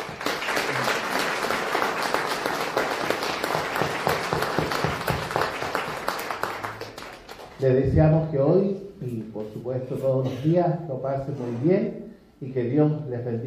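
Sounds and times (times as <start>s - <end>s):
audience applause: 0.0s - 7.6s
speech: 7.6s - 13.4s.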